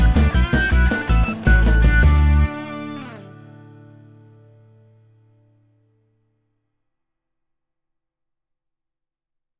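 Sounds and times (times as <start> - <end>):
karaoke singing: 0.0 - 3.4.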